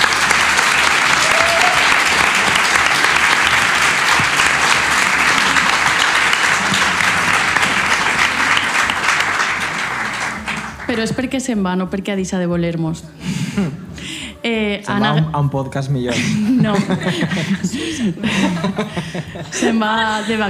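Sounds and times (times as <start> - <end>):
audience applause: 0.0 - 11.1
speech: 11.0 - 13.8, 14.5 - 20.4
laughter: 16.1 - 20.4.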